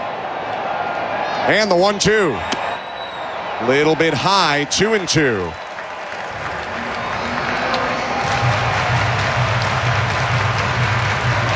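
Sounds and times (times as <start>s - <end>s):
stadium crowd cheering during a wave: 0.0s - 11.5s
speech: 1.5s - 2.6s, 3.6s - 5.6s
scattered clapping: 5.6s - 11.5s.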